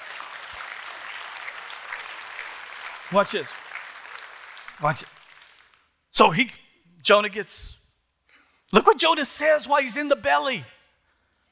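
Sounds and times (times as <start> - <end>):
audience applause: 0.0 - 5.9
speech: 3.1 - 3.6, 4.8 - 5.2, 6.2 - 7.8, 8.7 - 10.8.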